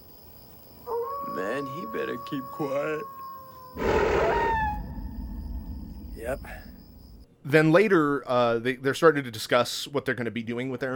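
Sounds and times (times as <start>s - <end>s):
coyote howling in a film scene: 0.8s - 7.2s
speech: 2.0s - 3.2s, 3.8s - 4.3s, 6.2s - 6.8s, 7.4s - 10.9s
steady low rumble: 3.8s - 7.3s.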